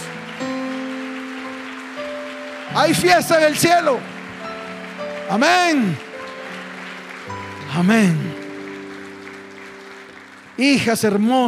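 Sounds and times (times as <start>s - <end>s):
audience applause: 0.0s - 11.4s
sustained keyboard chords: 0.0s - 11.4s
speech: 2.7s - 4.1s, 5.3s - 6.0s, 7.7s - 8.3s, 10.6s - 11.4s.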